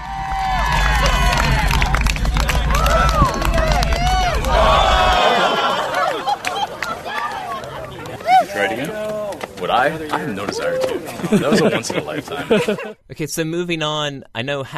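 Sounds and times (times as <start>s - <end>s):
low rumble: 0.0s - 10.1s
race crowd cheering: 0.0s - 13.0s
laughter: 1.0s - 13.0s
speech: 9.8s - 14.7s.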